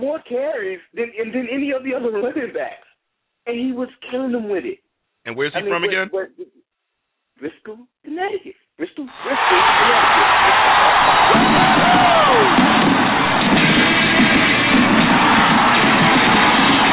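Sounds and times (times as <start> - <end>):
speech: 0.1 - 2.8, 3.4 - 6.6, 7.4 - 13.2
crowd cheering: 9.1 - 16.9
whoops: 9.2 - 16.9.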